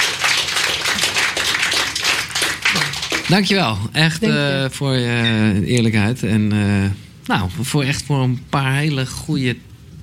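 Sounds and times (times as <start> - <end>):
audience applause: 0.0 - 4.5
speech: 3.3 - 9.7.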